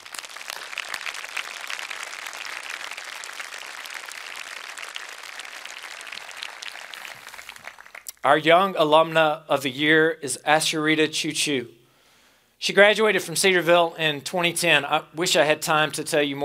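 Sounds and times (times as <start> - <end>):
audience applause: 0.0 - 8.1
speech: 8.2 - 11.8, 12.6 - 16.4.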